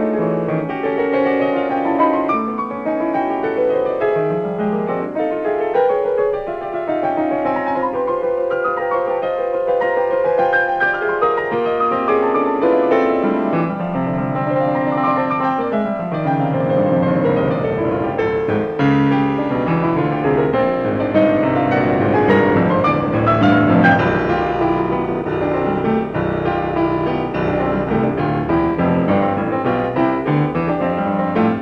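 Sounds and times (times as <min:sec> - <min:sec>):
rough piano sonata performance: 0:00.0 - 0:31.5.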